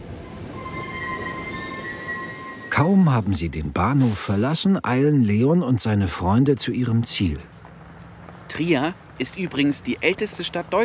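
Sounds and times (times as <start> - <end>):
train pulling into Trier main station: 0.0 - 10.8
train wheel squeal: 0.2 - 2.9
speech: 2.8 - 7.6, 8.6 - 10.8.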